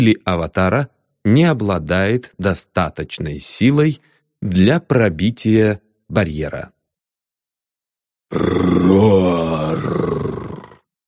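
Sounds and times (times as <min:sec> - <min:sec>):
speech: 0:00.0 - 0:06.8, 0:08.3 - 0:10.4
roar of a revived ancient creature: 0:08.3 - 0:10.9.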